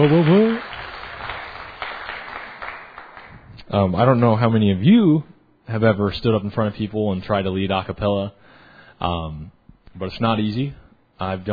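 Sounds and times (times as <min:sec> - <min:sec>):
speech: 0:00.0 - 0:00.7, 0:03.7 - 0:08.4, 0:09.0 - 0:11.5
church audience applause: 0:00.0 - 0:03.4.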